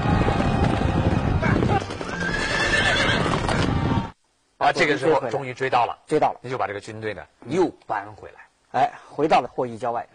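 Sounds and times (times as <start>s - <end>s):
two fast horses galloping in pursuit: 0.0s - 4.1s
horses neighing and whinnying: 1.6s - 3.7s
speech: 4.7s - 10.1s.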